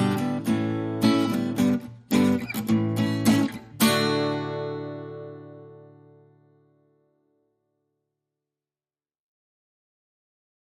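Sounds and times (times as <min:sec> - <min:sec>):
acoustic rhythm guitar: 0:00.0 - 0:07.3.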